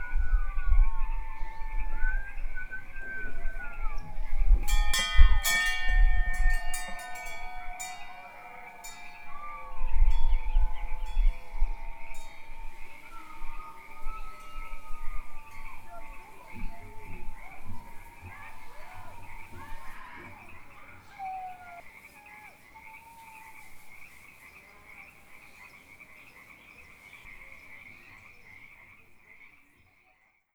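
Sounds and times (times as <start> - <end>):
howling: 0.0 - 4.6, 5.2 - 23.8.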